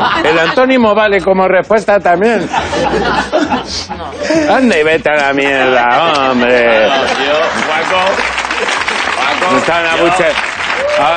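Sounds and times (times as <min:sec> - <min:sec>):
laughter: 0:00.0 - 0:00.8, 0:02.2 - 0:11.1
speech: 0:00.2 - 0:08.8, 0:09.4 - 0:11.1
audience applause: 0:06.3 - 0:11.1.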